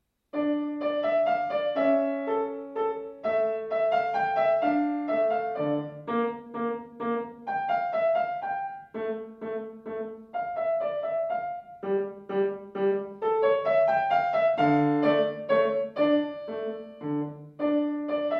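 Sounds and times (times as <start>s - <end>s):
piano minuet in D minor: 0.0s - 18.3s.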